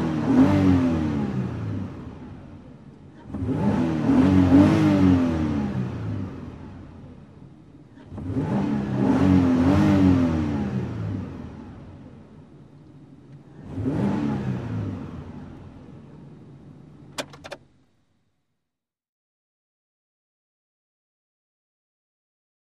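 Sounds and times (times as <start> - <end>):
SUV engine starting and revving from interior: 0.0 - 2.0, 3.2 - 6.4, 8.0 - 11.5, 13.6 - 15.4.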